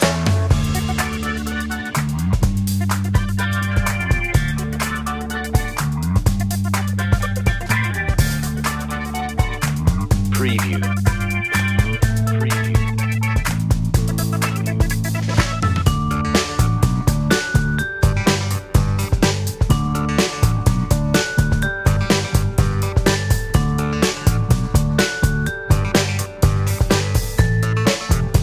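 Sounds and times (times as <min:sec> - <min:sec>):
happy groove music: 0:00.0 - 0:28.4.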